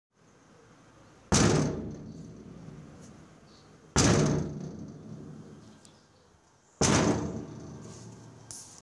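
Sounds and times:
metal lockers being bumped: 1.3 - 3.3, 4.0 - 5.8, 6.8 - 8.4.

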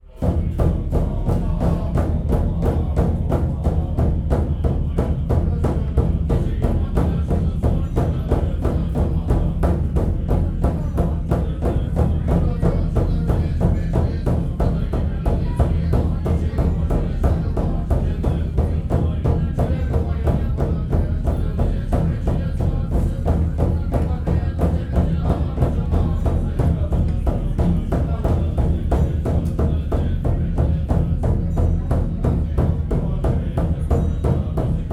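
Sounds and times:
monks chanting a mantra: 0.0 - 34.9.

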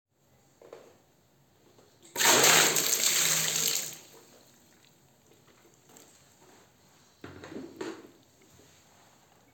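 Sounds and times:
bucket of water spilling: 2.1 - 4.9.

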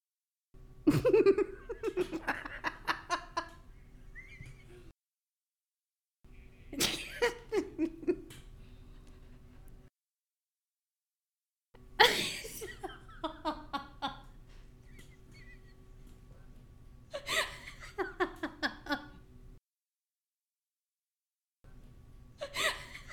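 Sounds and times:
person laughing: 0.9 - 4.9, 6.8 - 9.8, 12.0 - 15.8, 17.1 - 19.2, 22.4 - 23.1.

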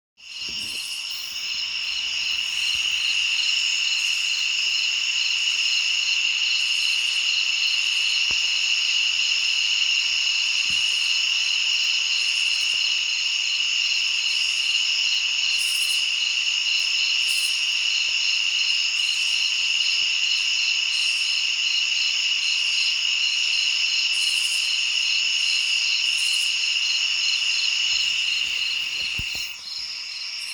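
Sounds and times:
forest at night ambience: 0.2 - 30.5.

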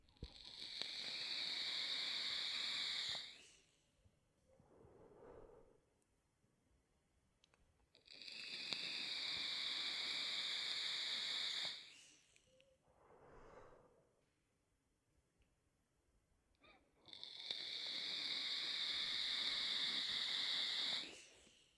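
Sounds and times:
person inhaling from vape: 0.3 - 3.8, 8.1 - 14.2, 17.5 - 21.7
person exhaling vape: 4.6 - 5.9, 11.6 - 14.2.

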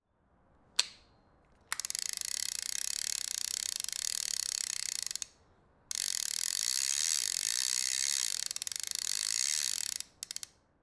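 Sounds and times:
fishing reel reeling: 1.7 - 5.3, 5.9 - 10.5.

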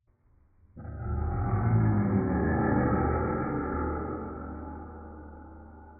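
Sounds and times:
dragon roar: 0.8 - 4.6.

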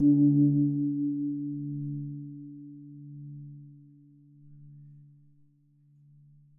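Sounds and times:
gong: 0.0 - 5.2.

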